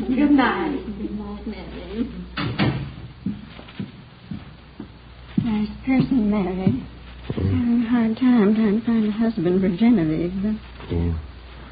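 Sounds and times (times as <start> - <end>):
speech: 0.1 - 2.4, 5.5 - 11.3
door opening and closing as a visitor is shown out: 2.4 - 3.0.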